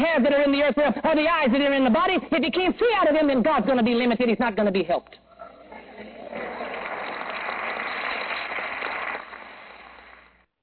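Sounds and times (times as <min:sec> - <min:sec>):
speech: 0:00.2 - 0:05.3
people clapping: 0:06.0 - 0:10.5.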